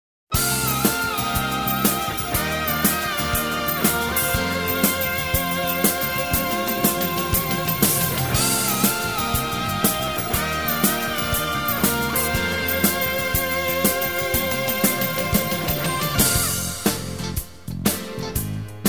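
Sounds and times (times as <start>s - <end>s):
brass music: 0.3s - 18.7s.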